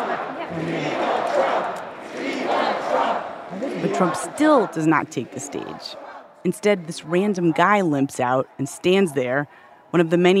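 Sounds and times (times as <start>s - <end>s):
rally crowd chanting: 0.0s - 10.3s
speech: 0.5s - 1.0s, 3.8s - 10.3s.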